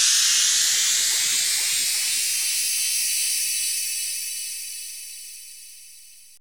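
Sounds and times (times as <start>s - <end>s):
bell arpeggio: 0.2s - 5.1s.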